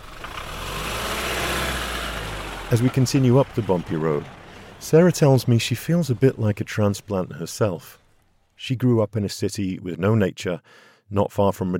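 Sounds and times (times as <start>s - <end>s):
truck engine idling while stopped at gate: 0.0s - 8.7s
speech: 2.7s - 8.0s, 8.6s - 11.7s.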